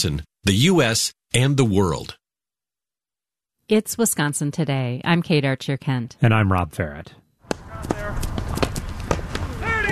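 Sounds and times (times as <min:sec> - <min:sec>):
speech: 0:00.0 - 0:02.2, 0:03.7 - 0:07.9
hurling players' footfalls running a drill: 0:07.5 - 0:09.9.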